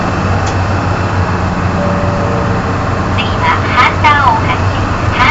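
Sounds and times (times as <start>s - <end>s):
organ playing: 0.2s - 5.1s.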